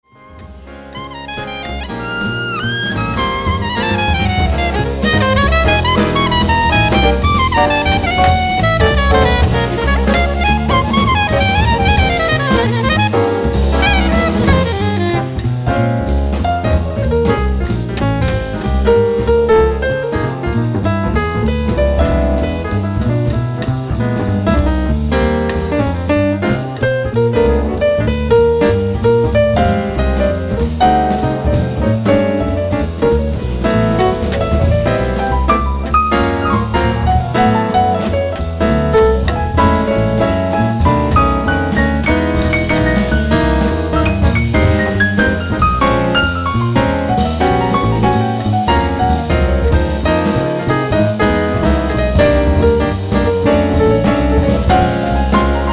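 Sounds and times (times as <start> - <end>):
musical trio: 0.0 - 55.7.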